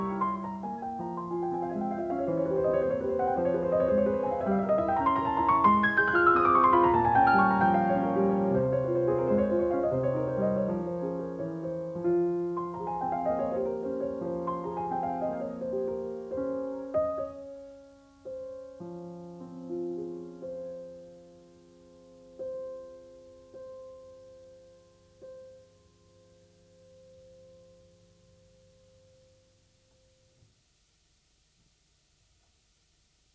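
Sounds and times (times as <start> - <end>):
piano etude in F minor: 0.0 - 25.6.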